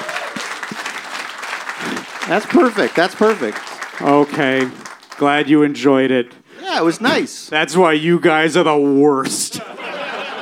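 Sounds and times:
audience applause: 0.0 - 5.4
speech: 2.3 - 9.8
laughter: 9.5 - 10.4.

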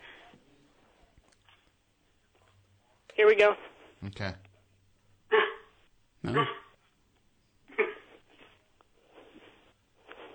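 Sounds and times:
speech: 3.2 - 4.4, 6.2 - 6.6
person imitating a small dog's yappy barking: 6.2 - 6.7.

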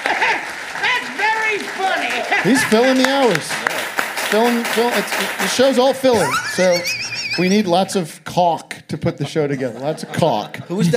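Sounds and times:
laughter: 0.0 - 0.6, 2.2 - 3.6, 4.4 - 7.9, 9.0 - 10.9
audience applause: 0.0 - 7.6
speech: 2.4 - 3.7, 4.3 - 10.9.

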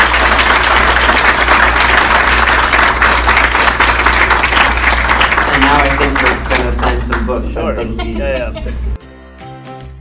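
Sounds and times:
audience applause for the guest of honor at a book discussion event: 0.0 - 7.4
speech: 7.3 - 9.0
laughter: 7.4 - 9.0.

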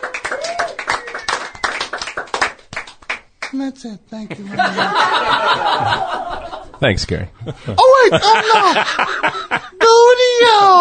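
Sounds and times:
crowd clapping: 0.0 - 3.6
speech: 3.5 - 10.7
laughter: 4.3 - 6.8, 7.4 - 10.0.

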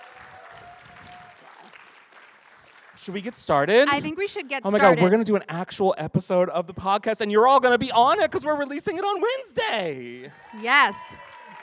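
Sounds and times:
audience applause: 0.0 - 5.0, 9.7 - 11.6
speech: 3.0 - 11.6.

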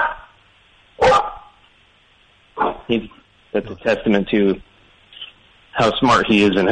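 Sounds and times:
Portuguese water dog named Tractor barking: 0.0 - 0.3, 1.0 - 1.6
speech: 2.9 - 4.7, 5.8 - 6.6.

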